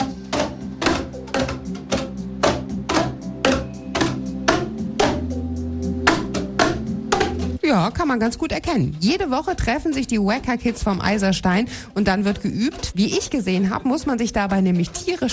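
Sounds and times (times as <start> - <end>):
children hitting tubes on a table to play a tune: 0.0 - 5.4, 6.0 - 7.6
speech: 7.9 - 15.3.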